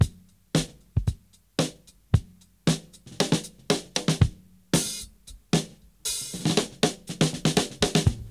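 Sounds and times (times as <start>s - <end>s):
breakbeat drums: 0.0s - 8.2s.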